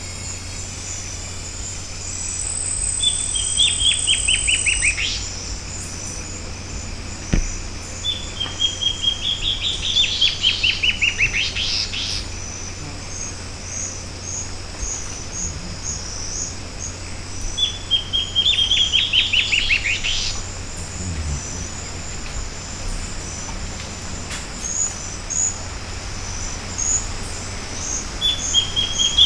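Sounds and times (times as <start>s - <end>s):
bird song: 0.0s - 29.2s
high-pitched insect buzzing: 2.1s - 25.6s.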